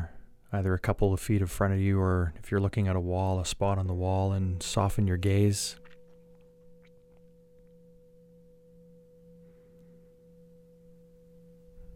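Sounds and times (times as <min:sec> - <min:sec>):
speech: 0:00.5 - 0:05.8
low hum: 0:04.4 - 0:11.9
meditation bell ringing: 0:05.2 - 0:11.9.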